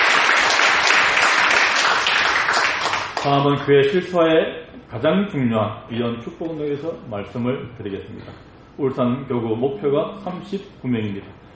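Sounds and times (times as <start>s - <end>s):
audience applause: 0.0s - 3.3s
speech: 3.2s - 11.4s.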